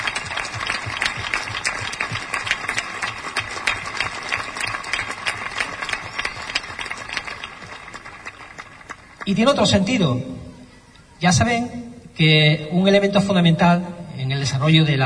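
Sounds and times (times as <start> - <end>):
crowd applause: 0.0 - 9.8
speech: 9.3 - 10.3, 11.2 - 15.0.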